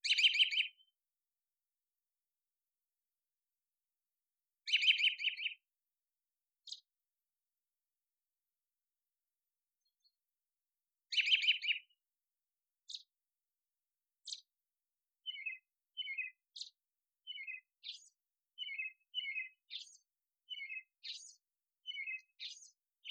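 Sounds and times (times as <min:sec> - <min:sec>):
birds: 0:00.0 - 0:01.0, 0:04.6 - 0:05.6, 0:06.6 - 0:06.9, 0:11.0 - 0:12.0, 0:12.8 - 0:13.2, 0:14.2 - 0:14.5, 0:15.2 - 0:23.0.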